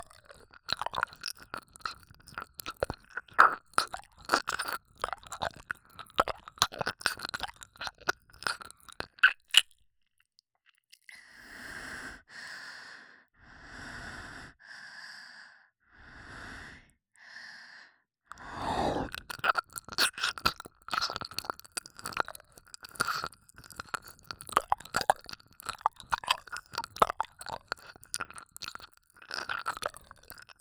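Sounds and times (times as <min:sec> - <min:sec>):
ASMR ear licking sounds: 0:00.0 - 0:09.8, 0:18.3 - 0:30.5.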